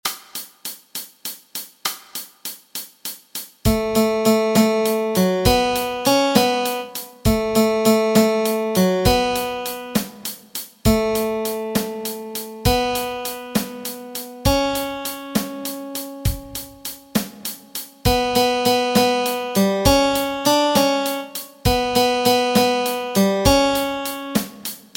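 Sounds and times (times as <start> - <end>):
melody: 3.7 - 10.0, 10.9 - 17.2, 18.0 - 24.4.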